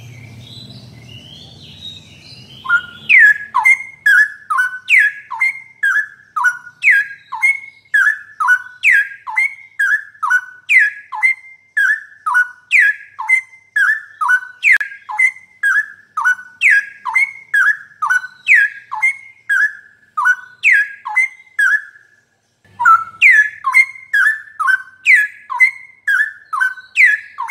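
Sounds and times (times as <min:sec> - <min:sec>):
bird singing whistled notes: 0:00.0 - 0:27.5.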